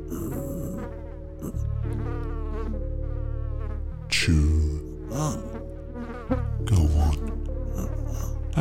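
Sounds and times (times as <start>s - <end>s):
fly buzzing: 0.0s - 8.6s
speech: 4.2s - 5.6s.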